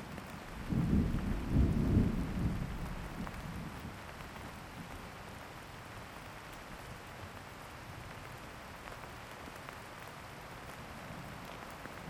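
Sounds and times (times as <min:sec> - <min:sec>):
thunderstorm: 0:00.5 - 0:04.0.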